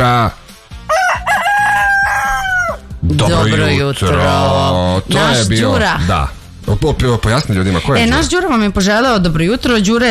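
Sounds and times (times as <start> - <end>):
speech: 0.0 - 0.4, 3.1 - 10.0
rooster crowing as a morning wake-up call: 0.8 - 2.9.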